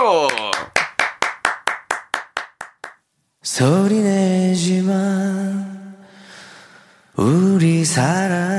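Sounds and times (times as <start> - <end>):
speech: 0.0 - 0.5, 3.6 - 5.2, 7.8 - 8.4
audience clapping: 0.0 - 3.0.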